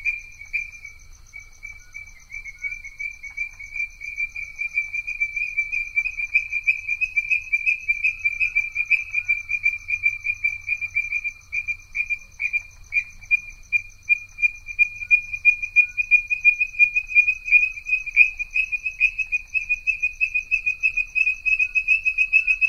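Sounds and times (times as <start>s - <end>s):
tree frog calling: 0.0s - 22.6s.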